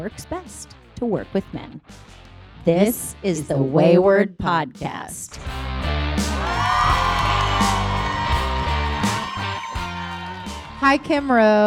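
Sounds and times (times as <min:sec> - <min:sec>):
speech: 0:00.0 - 0:05.6, 0:10.8 - 0:11.6
studio audience yelling and whooping: 0:06.2 - 0:11.6.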